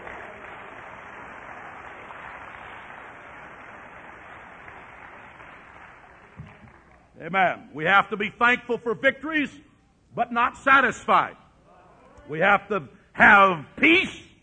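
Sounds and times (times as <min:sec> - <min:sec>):
audience clapping hands: 0:00.0 - 0:07.2
speech: 0:07.2 - 0:11.4, 0:12.3 - 0:14.2.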